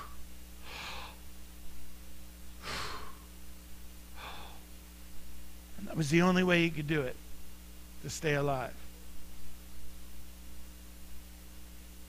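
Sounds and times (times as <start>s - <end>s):
man imitating laboured breathing of a crucified person exhaling: 0.0s - 1.3s, 2.6s - 3.3s, 4.1s - 4.7s
speech: 5.9s - 7.2s, 8.0s - 8.8s.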